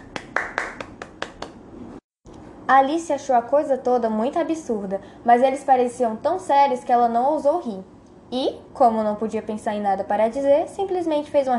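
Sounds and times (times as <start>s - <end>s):
scattered hand claps from a small group: 0.0s - 1.6s
speech: 2.7s - 11.5s.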